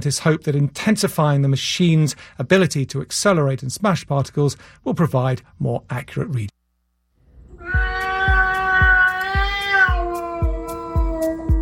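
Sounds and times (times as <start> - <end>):
speech: 0.0 - 6.5
pet cat yowling: 7.5 - 11.6.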